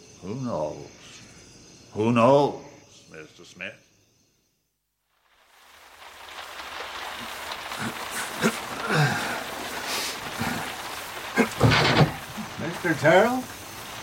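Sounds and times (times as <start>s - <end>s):
speech: 0.2s - 1.2s, 2.0s - 3.9s, 12.8s - 13.6s
garden hose sprinkling well water on the roof: 5.3s - 14.0s.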